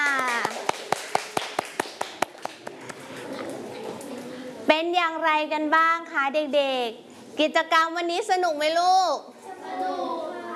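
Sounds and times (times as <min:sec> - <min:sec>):
children clapping for classmates: 0:00.0 - 0:03.0
speech: 0:05.0 - 0:10.1.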